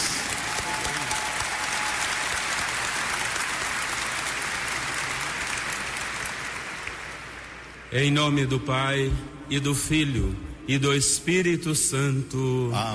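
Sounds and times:
big round of audience applause: 0:00.0 - 0:07.8
speech: 0:07.9 - 0:12.9.

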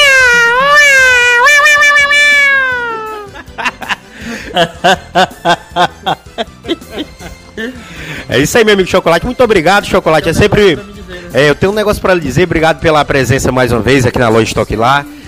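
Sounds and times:
person imitating a cat's meow: 0:00.0 - 0:03.3
laughter: 0:02.7 - 0:08.0
speech: 0:04.6 - 0:06.5, 0:08.3 - 0:15.2.

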